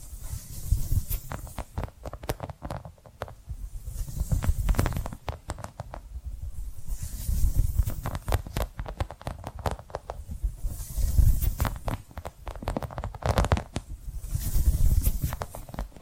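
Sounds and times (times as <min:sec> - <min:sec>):
bright hiss: 0:00.0 - 0:01.7, 0:03.7 - 0:05.2, 0:06.6 - 0:08.4, 0:10.2 - 0:12.0, 0:14.1 - 0:15.8
tapping and scratching: 0:00.9 - 0:03.4, 0:04.0 - 0:06.0, 0:07.4 - 0:16.0.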